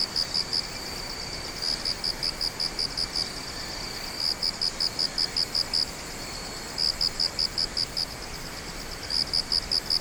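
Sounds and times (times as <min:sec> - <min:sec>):
insect singing in pulsed chirps: 0:00.0 - 0:09.9.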